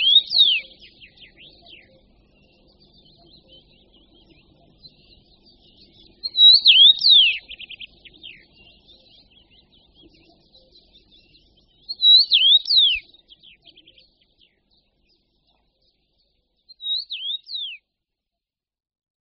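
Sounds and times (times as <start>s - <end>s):
Eurasian bullfinch calling: 0.0s - 1.6s, 6.2s - 8.0s, 11.9s - 13.0s.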